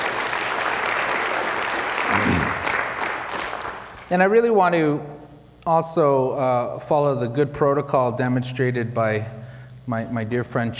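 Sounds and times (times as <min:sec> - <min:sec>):
applause: 0:00.0 - 0:04.1
speech: 0:04.1 - 0:10.7.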